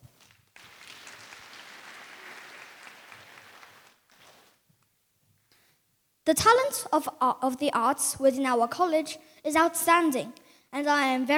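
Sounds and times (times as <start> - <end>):
audience applause after school performance: 0.5 - 4.5
speech: 6.3 - 11.3.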